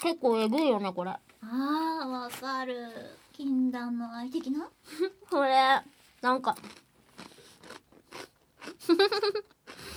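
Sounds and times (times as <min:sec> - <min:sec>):
speech: 0:00.0 - 0:06.8, 0:08.8 - 0:09.5
someone chewing and crunching food: 0:06.4 - 0:09.9.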